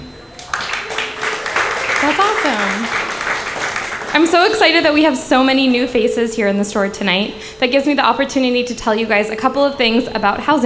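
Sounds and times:
audience applauding: 0:00.4 - 0:05.1
speech: 0:02.0 - 0:03.2, 0:04.1 - 0:10.6.

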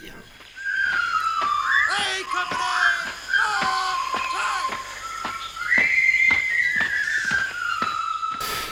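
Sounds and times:
whistled march from war film soundtrack: 0:00.4 - 0:08.6.

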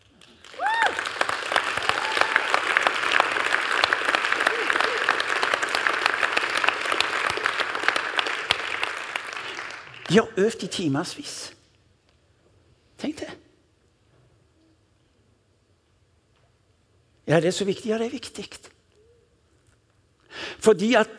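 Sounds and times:
audience applause: 0:00.0 - 0:10.2
person cheering: 0:00.5 - 0:01.2, 0:01.8 - 0:02.9, 0:04.3 - 0:05.4
speech: 0:10.1 - 0:11.6, 0:17.3 - 0:18.6, 0:20.6 - 0:21.1.

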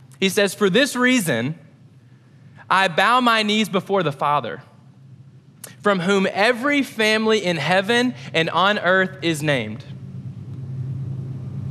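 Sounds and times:
speech: 0:00.2 - 0:01.6, 0:02.7 - 0:04.7, 0:05.8 - 0:10.0
passing train rumble: 0:09.5 - 0:11.7.

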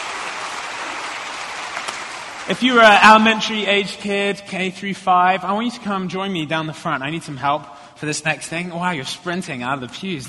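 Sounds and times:
audience clapping: 0:00.0 - 0:03.3
speech: 0:02.5 - 0:10.2.

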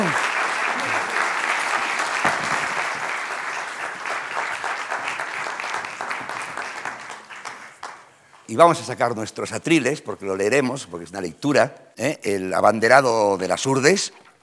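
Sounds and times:
audience applause: 0:00.0 - 0:08.2
speech: 0:08.5 - 0:14.2.

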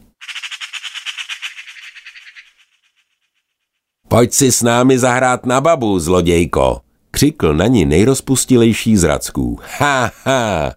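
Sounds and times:
magpies chattering: 0:00.2 - 0:03.6
speech: 0:04.2 - 0:10.7.

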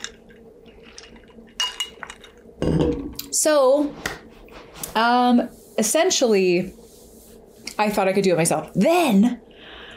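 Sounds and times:
glass clinking: 0:01.6 - 0:03.0
speech: 0:02.6 - 0:04.2, 0:05.0 - 0:06.8, 0:07.8 - 0:09.4.

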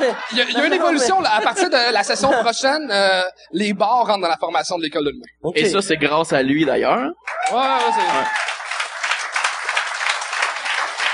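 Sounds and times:
laughter: 0:00.0 - 0:02.7
speech: 0:00.0 - 0:08.6
applause: 0:07.2 - 0:11.1.

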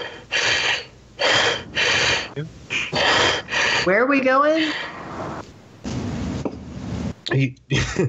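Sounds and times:
man breathing deeply and heavily: 0:00.0 - 0:04.0
speech: 0:02.4 - 0:02.7, 0:03.8 - 0:05.0, 0:07.3 - 0:08.0.

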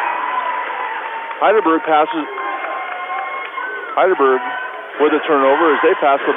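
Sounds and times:
basketball crowd cheering: 0:00.0 - 0:06.3
speech: 0:01.4 - 0:02.4, 0:04.0 - 0:06.3.

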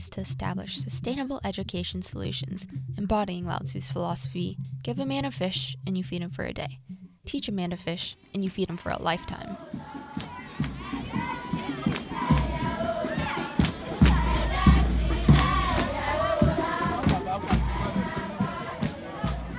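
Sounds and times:
speech: 0:00.0 - 0:10.3
Ghanaian villagers shouting and cheering at a welcoming ceremony: 0:09.0 - 0:19.5.

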